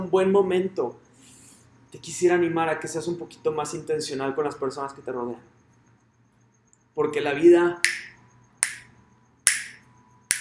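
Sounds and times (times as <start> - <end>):
speech: 0.0 - 1.0, 1.9 - 5.6, 7.0 - 8.1
finger snapping: 7.9 - 8.8, 9.5 - 10.3.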